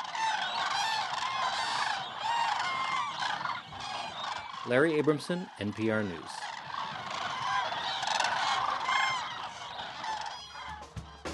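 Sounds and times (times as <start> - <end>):
cranes calling at a wildlife refuge: 0.0 - 11.3
speech: 4.7 - 6.4.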